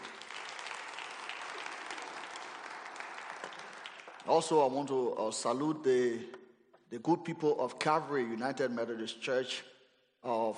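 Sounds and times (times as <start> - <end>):
audience applause: 0.0 - 4.8
speech: 4.2 - 10.5.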